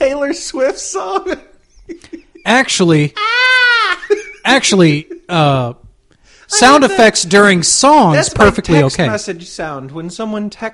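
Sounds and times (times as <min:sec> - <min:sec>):
speech: 0:00.1 - 0:03.4, 0:04.5 - 0:05.8, 0:06.5 - 0:10.7
screaming goat sound clip: 0:03.1 - 0:04.1.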